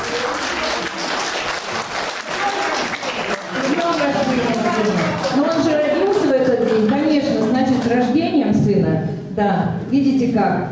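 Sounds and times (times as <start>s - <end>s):
audience applause: 0.0s - 8.0s
speech: 7.9s - 10.6s.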